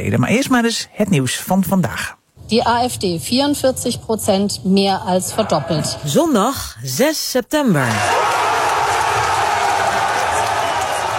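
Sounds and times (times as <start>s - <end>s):
speech: 0.0s - 8.3s
crowd cheering and clapping at election result: 7.9s - 11.1s.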